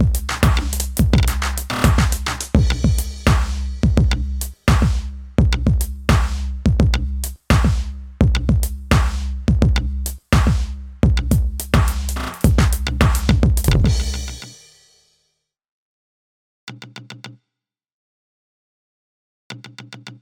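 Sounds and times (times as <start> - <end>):
drums and percussion: 0.0 - 15.2.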